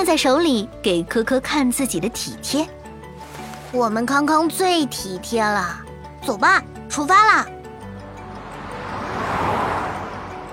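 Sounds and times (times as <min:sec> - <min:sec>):
speech: 0:00.0 - 0:02.8, 0:03.7 - 0:07.6
car speeding over hills and valleys: 0:07.8 - 0:10.5.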